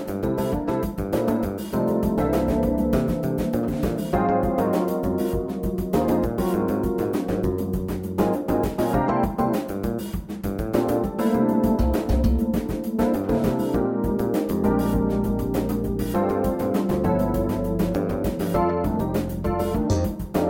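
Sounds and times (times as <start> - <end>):
bass trombone playing a funk etude: 0.0 - 20.4.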